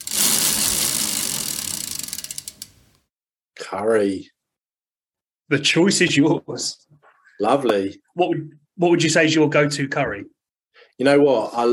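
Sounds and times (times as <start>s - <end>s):
selection wheel ticking as it spins: 0.0s - 2.8s
speech: 3.7s - 4.4s, 5.5s - 10.4s, 11.0s - 11.7s.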